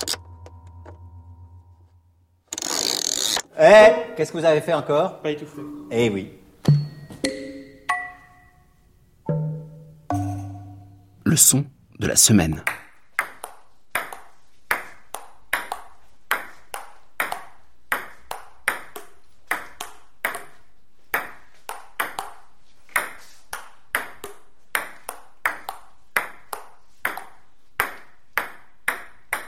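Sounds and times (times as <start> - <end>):
speech: 3.6 - 6.4, 11.3 - 12.9
ping-pong balls bouncing: 6.6 - 8.6, 9.3 - 11.1, 12.6 - 29.4.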